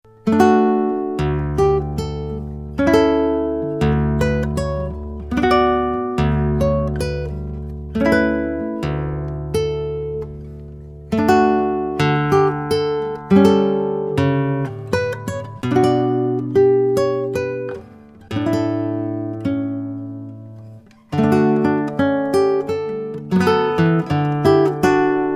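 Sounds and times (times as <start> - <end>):
Catalonian song with guitar: 0.0 - 25.3.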